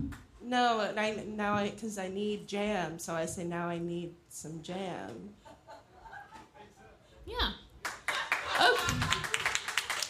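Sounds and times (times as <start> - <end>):
speech: 0.5 - 5.4, 7.3 - 7.6
laughter: 5.4 - 7.0, 8.1 - 9.7
round of applause: 7.8 - 10.0.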